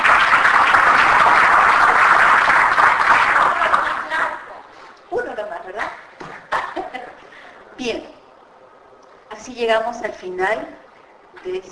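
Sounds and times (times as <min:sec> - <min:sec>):
audience applause: 0:00.0 - 0:04.4
speech: 0:09.6 - 0:10.8, 0:11.4 - 0:11.7.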